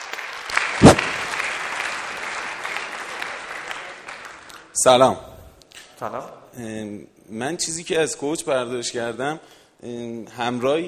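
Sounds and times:
audience applause at a coaching workshop: 0.0 - 4.7
speech: 4.8 - 5.3, 6.0 - 10.8.

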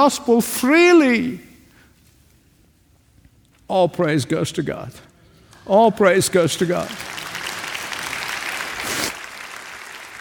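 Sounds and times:
speech: 0.0 - 1.5, 3.7 - 7.3
audience clapping: 6.6 - 10.2.

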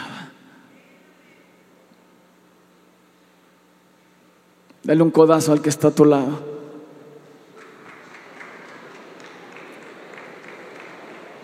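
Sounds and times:
speech: 4.8 - 6.5
crowd applause: 7.5 - 11.4.

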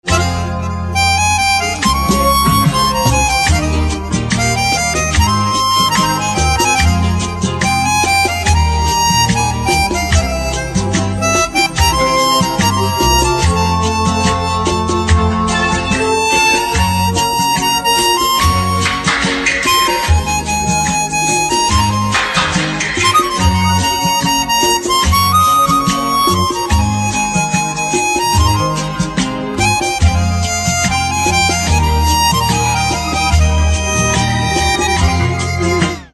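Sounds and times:
melodica instrumental ringtone: 0.0 - 36.1.

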